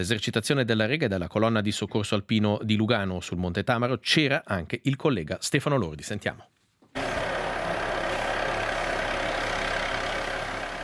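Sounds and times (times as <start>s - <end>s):
speech: 0.0s - 6.6s
rescue helicopter engine: 7.0s - 10.8s.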